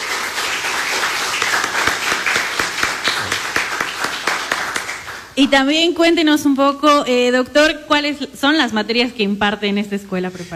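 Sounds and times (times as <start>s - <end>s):
audience applause: 0.0s - 5.4s
speech: 5.4s - 10.5s.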